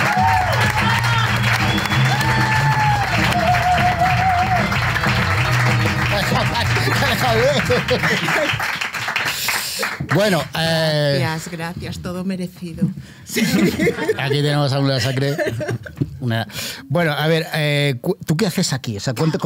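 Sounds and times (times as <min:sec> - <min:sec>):
audience applause: 0:00.0 - 0:10.5
laughter: 0:04.6 - 0:08.8, 0:13.3 - 0:16.1
speech: 0:07.9 - 0:08.6, 0:10.2 - 0:19.4.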